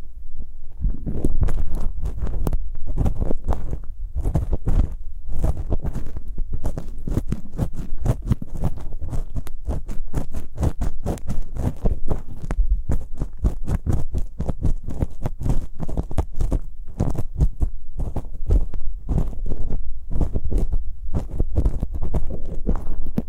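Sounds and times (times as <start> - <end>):
ear picking with props scratching: 0.6 - 23.2
deep thumping: 0.7 - 23.2.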